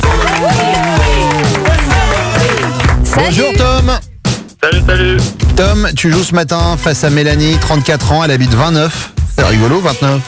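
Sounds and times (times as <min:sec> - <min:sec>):
whoops and cheering voices from the small crowd: 0:00.0 - 0:02.7
radio studio applause for a game show contestant: 0:00.0 - 0:03.7
speech: 0:03.3 - 0:04.1, 0:04.9 - 0:10.2.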